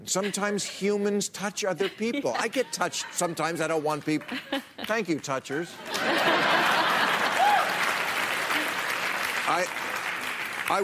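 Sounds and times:
speech: 0.0s - 6.6s, 9.5s - 9.8s, 10.7s - 10.8s
laughter: 1.6s - 7.8s
crowd applauding: 4.0s - 10.8s
faint cheers or whoops: 7.4s - 8.0s.

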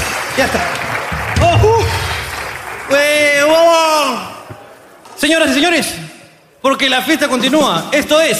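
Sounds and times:
audience applause: 0.0s - 4.2s
speech: 0.4s - 2.0s, 2.9s - 4.3s, 5.2s - 6.0s, 6.6s - 8.3s.

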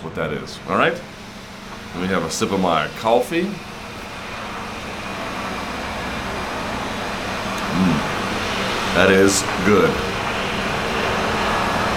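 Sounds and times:
speech: 0.2s - 1.2s, 1.9s - 3.7s, 9.0s - 10.1s
buzzsaw cutting outside: 0.2s - 11.9s.

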